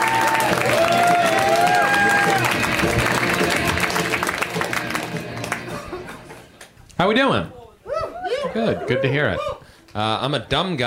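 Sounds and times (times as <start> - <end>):
crowd clapping: 0.0 - 6.8
laughter: 5.6 - 6.6, 8.2 - 9.5
speech: 7.0 - 7.6, 8.5 - 10.8.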